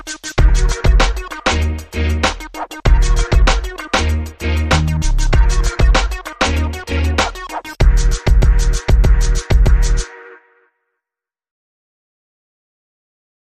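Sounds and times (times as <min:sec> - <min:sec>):
uptempo R&B music: 0:00.0 - 0:10.2.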